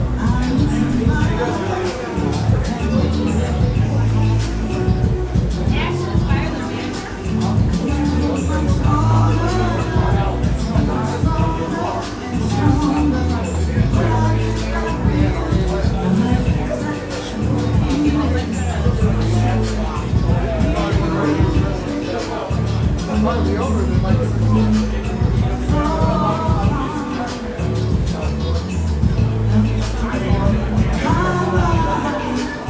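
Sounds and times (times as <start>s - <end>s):
karaoke singing: 0.0s - 32.6s.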